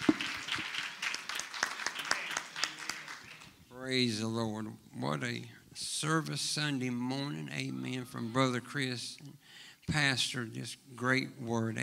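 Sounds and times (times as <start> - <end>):
audience applause: 0.0 - 3.6
speech: 3.8 - 11.8.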